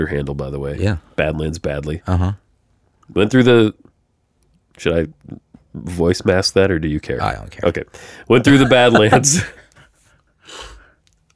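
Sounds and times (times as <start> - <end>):
speech: 0.0 - 2.4, 3.1 - 3.9, 4.8 - 9.6
laughter: 8.4 - 9.8
person sniffling: 9.2 - 11.0.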